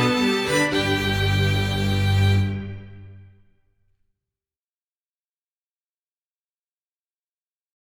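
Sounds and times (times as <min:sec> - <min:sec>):
quartet introduction: 0:00.0 - 0:03.4.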